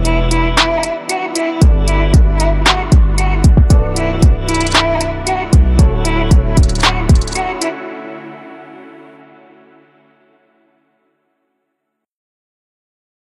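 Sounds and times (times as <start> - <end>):
late night RnB music loop: 0.0 - 7.8.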